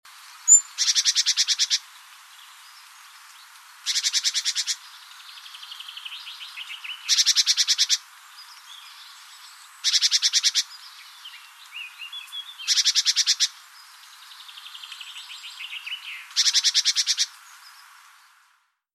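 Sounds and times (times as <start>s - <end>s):
great tit buzzy repeated calls: 0.5s - 1.9s, 3.8s - 4.9s, 5.5s - 8.1s, 9.8s - 11.0s, 11.9s - 13.6s, 15.6s - 17.4s.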